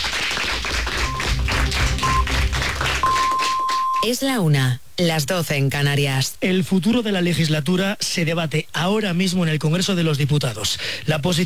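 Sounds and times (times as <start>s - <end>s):
applause: 0.0s - 4.2s
speech: 4.0s - 11.4s.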